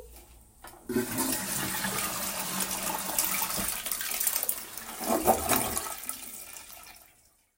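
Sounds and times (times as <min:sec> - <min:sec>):
person urinating after holding it in: 0:00.9 - 0:07.4.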